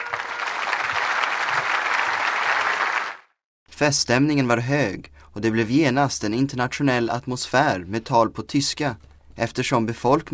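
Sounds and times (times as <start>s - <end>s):
crowd cheering: 0.0s - 3.3s
speech: 3.8s - 10.3s.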